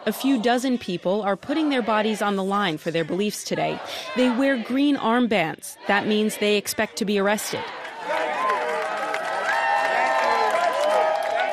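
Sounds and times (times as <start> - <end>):
speech: 0.0 - 7.8
voices calling out and whooping: 0.0 - 11.5
protest crowd applauding and cheering: 7.6 - 11.5.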